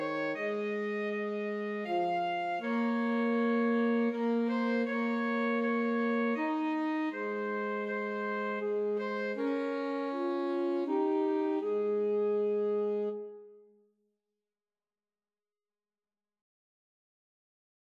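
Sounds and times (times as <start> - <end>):
alto saxophone trio playing a Christmas carol: 0.0 - 13.6.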